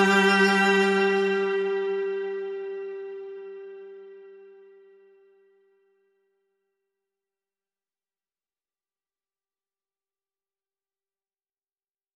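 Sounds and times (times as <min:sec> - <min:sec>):
lead cello only: 0:00.0 - 0:04.4.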